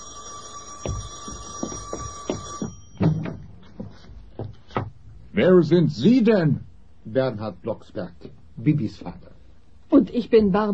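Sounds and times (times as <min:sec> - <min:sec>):
doorbell ringing insistently: 0:00.0 - 0:03.8
speech: 0:05.4 - 0:09.3, 0:10.1 - 0:10.7.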